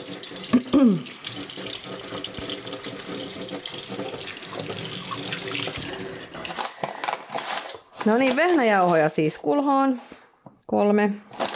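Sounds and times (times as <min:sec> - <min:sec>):
washing hands under running tap: 0:00.0 - 0:06.4
speech: 0:00.8 - 0:01.2, 0:08.0 - 0:10.1, 0:10.7 - 0:11.3.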